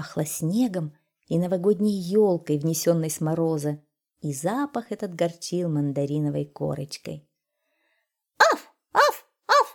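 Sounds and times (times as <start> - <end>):
speech: 0.0 - 7.3
white fluffy dog barking at a forester's house in snowy winter: 8.4 - 9.7.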